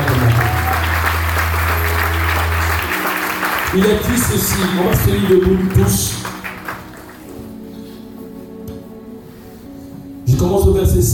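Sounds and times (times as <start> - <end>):
church congregation applauding and cheering during a worship service: 0.0 - 7.5
speech: 3.8 - 6.2, 10.4 - 11.1.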